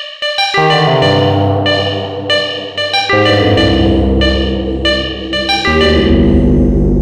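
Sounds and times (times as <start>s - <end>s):
Emulator 1 modular synthesizer: 0.4s - 6.8s.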